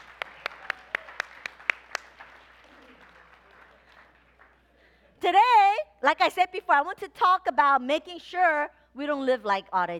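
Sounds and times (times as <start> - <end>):
audience clapping: 0.0 - 4.8
speech: 5.2 - 9.9.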